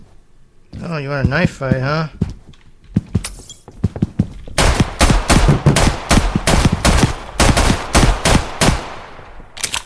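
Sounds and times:
speech: 0:00.9 - 0:02.2
9mm gunfire in a video game: 0:04.6 - 0:09.2.

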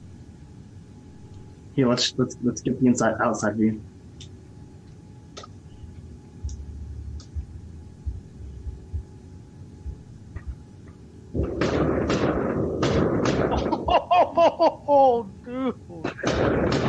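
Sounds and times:
speech: 0:01.8 - 0:03.9
firework mortars exploding outside: 0:11.4 - 0:13.9, 0:16.1 - 0:16.8
laughter: 0:13.5 - 0:15.3.

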